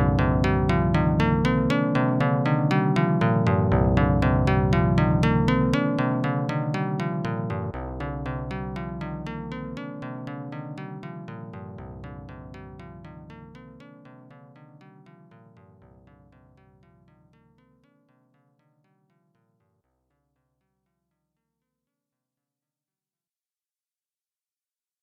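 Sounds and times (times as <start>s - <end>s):
out-of-tune music: 0.0s - 19.6s.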